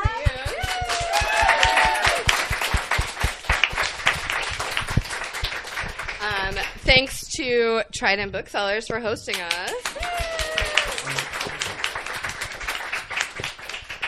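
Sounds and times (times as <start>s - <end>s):
voices and whoops: 0.0s - 2.3s, 9.8s - 11.5s
audience clapping: 0.0s - 7.2s, 9.3s - 14.0s
speech: 6.8s - 10.4s.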